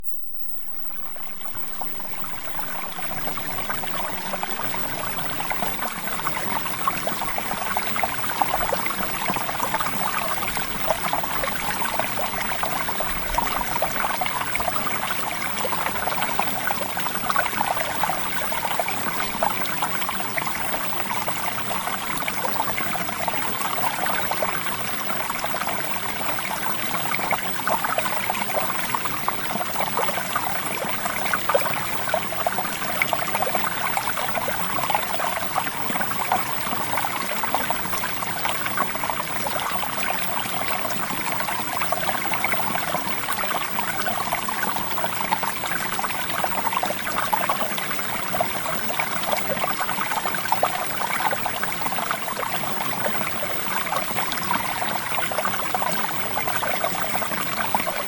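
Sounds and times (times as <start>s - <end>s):
water: 0.1s - 58.0s.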